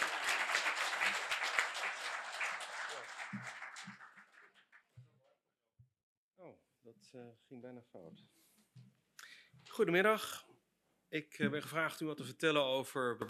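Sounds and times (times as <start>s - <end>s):
audience applause: 0.0s - 4.8s
speech: 6.9s - 8.4s, 9.8s - 10.5s, 11.1s - 13.2s.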